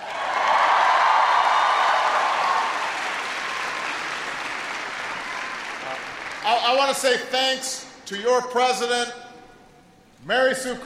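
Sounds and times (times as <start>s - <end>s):
audience applause: 0.0s - 7.0s
speech: 6.7s - 9.2s, 10.2s - 10.8s.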